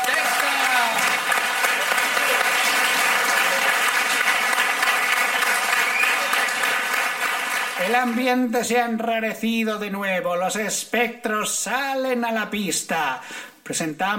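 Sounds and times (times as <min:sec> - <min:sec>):
audience applause: 0:00.0 - 0:08.4
speech: 0:07.9 - 0:14.1.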